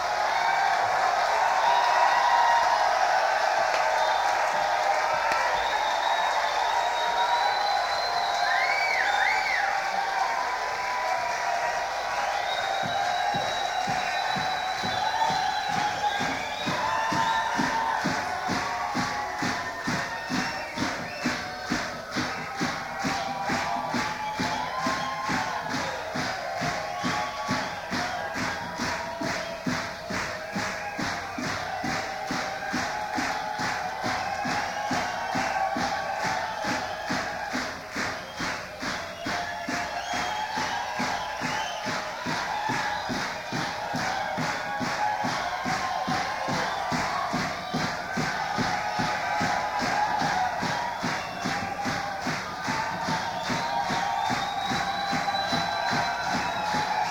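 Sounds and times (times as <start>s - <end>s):
crowd: 0.0s - 57.0s.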